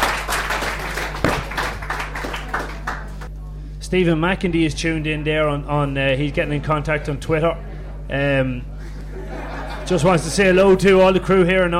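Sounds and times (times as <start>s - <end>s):
crowd applauding: 0.0s - 3.3s
low hum: 0.0s - 9.9s
speech: 3.9s - 9.3s, 9.9s - 11.7s
laughter: 8.7s - 11.0s.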